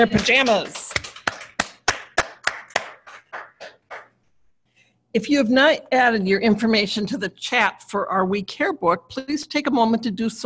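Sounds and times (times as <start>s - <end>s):
speech: 0.0s - 0.8s, 5.2s - 10.4s
people applauding: 0.0s - 4.2s.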